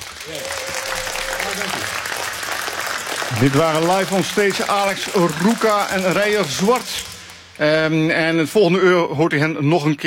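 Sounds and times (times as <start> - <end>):
audience applause: 0.0 - 7.4
speech: 0.2 - 0.6, 3.3 - 10.0.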